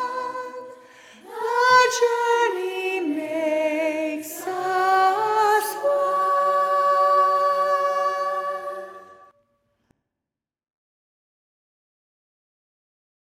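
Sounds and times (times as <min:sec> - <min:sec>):
soprano singing: 0:00.0 - 0:09.3.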